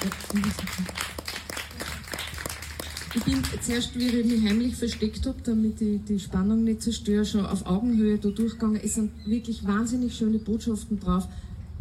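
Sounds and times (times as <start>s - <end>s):
speech: 0.0s - 1.1s, 3.2s - 11.4s
crowd applauding: 0.0s - 4.7s.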